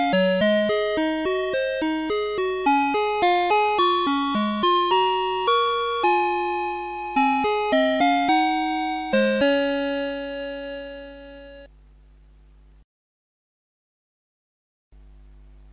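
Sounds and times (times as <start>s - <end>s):
A chord: 0.0s - 11.7s.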